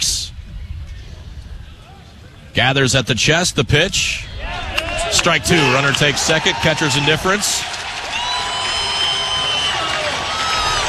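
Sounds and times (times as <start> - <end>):
speech: 2.6 - 7.8
large stadium crowd cheering: 4.2 - 10.8.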